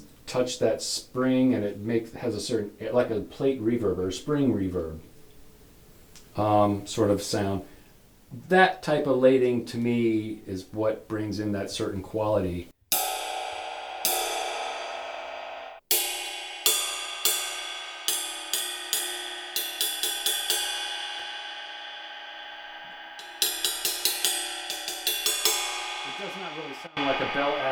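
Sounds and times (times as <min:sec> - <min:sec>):
speech: 0:00.3 - 0:05.1, 0:06.4 - 0:07.7, 0:08.3 - 0:12.7
asymmetrical cymbal struck and ringing: 0:12.9 - 0:27.6.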